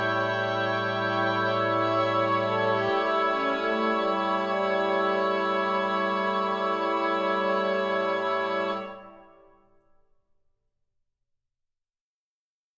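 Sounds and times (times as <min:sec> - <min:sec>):
instrumental music: 0:00.0 - 0:09.9.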